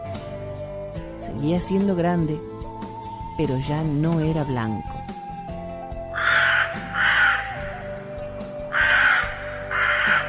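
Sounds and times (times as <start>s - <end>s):
speech: 1.3s - 2.5s, 3.4s - 4.9s
large crow cawing while flying: 6.1s - 8.0s, 8.7s - 10.2s.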